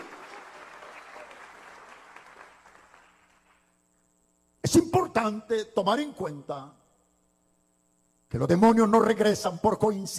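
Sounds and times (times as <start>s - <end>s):
audience applause: 0.0s - 3.6s
speech: 4.7s - 6.8s, 8.3s - 10.1s.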